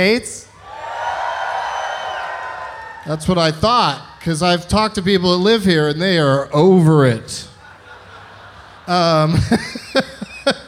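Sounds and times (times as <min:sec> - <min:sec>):
speech: 0:00.0 - 0:00.4, 0:03.1 - 0:07.5, 0:08.9 - 0:10.6
audience cheering: 0:00.6 - 0:04.6
laughter: 0:07.3 - 0:10.6.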